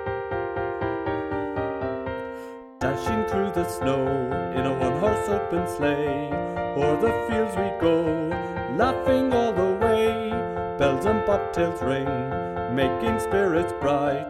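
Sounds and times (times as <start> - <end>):
soprano melody: 0.0 - 14.2.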